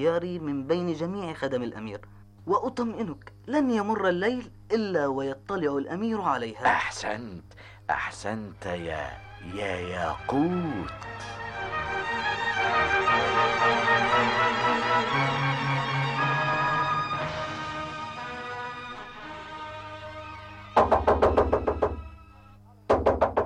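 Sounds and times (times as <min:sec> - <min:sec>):
speech: 0:00.0 - 0:11.5
music: 0:08.5 - 0:23.4
knocking on a door: 0:20.8 - 0:22.2, 0:22.9 - 0:23.4.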